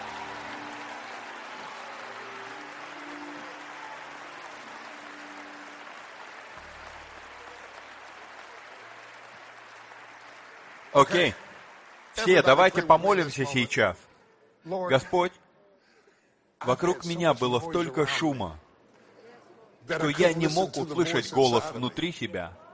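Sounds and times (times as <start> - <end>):
low droning musical tone: 0.0 - 8.2
crowd clapping hands: 0.0 - 13.6
speech: 11.0 - 11.4, 12.2 - 15.4, 16.6 - 18.6, 19.9 - 22.6.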